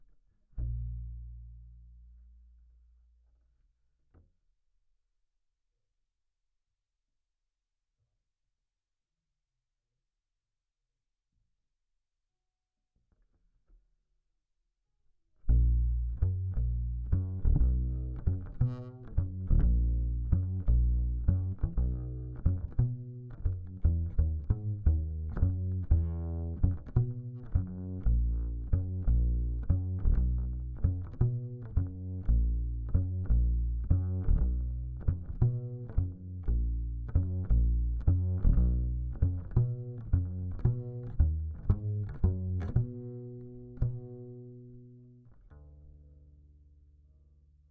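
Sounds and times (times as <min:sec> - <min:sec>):
bass guitar recorded by direct input: 0:00.0 - 0:03.2, 0:15.4 - 0:47.6.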